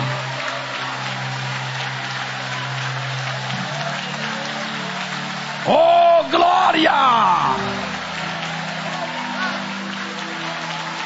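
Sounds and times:
audience applauding: 0.0 - 11.0
speech: 5.7 - 5.9.

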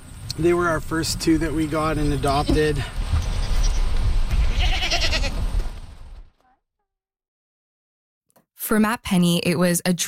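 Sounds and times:
steady noise and movement: 0.0 - 6.4
speech: 0.4 - 3.0, 8.7 - 10.0
goats bleating while being fed on a farm: 2.1 - 5.4.

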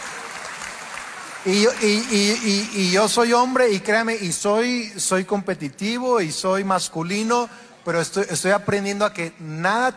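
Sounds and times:
women in the audience applauding: 0.0 - 3.0
speech: 1.4 - 9.9.

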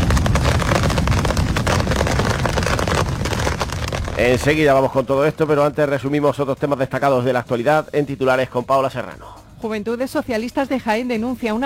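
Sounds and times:
summer hailstorm in Sierra Mágina: 0.0 - 5.6
speech: 4.2 - 11.6.

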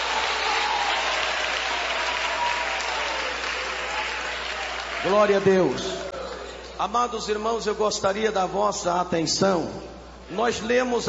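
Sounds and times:
people clapping hands: 0.0 - 6.4
speech: 5.0 - 6.0, 6.8 - 11.0.

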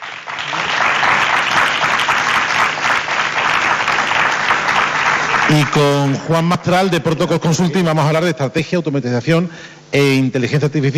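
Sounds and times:
audience applause: 0.0 - 6.3
speech: 5.5 - 10.9.

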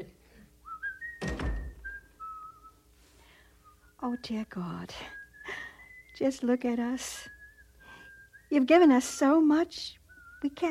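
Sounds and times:
person whistling a tune: 0.6 - 2.8, 5.0 - 6.3, 7.2 - 9.3, 10.1 - 10.6
dull thump: 1.2 - 2.0
speech: 4.1 - 5.2, 6.2 - 7.4, 8.5 - 10.6.

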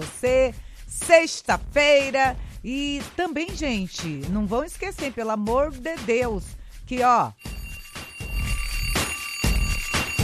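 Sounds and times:
speech: 0.0 - 7.5
bell ringing: 7.4 - 10.2.

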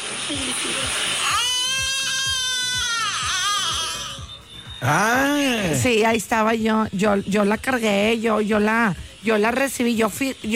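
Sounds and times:
speech: 0.3 - 1.2, 4.8 - 10.5
newborn baby girl crying just after birth: 1.2 - 4.4.

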